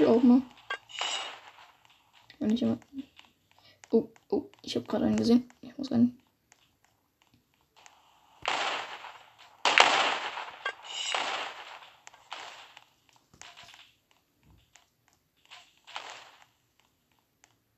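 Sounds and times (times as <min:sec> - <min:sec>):
video game rocket launcher firing: 0:00.0 - 0:02.0, 0:08.4 - 0:12.8, 0:15.8 - 0:16.4
speech: 0:00.1 - 0:01.1, 0:02.4 - 0:03.1, 0:03.9 - 0:06.2.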